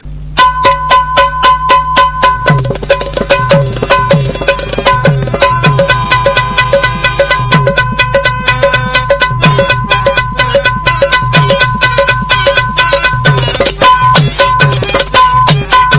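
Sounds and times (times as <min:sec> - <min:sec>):
Marathi lavani music: 0:00.0 - 0:15.9.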